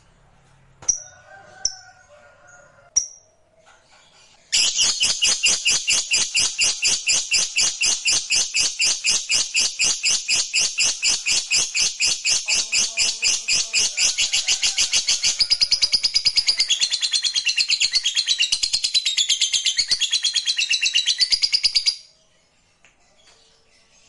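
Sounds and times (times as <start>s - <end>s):
lovebird harsh high chirps: 4.5s - 21.9s.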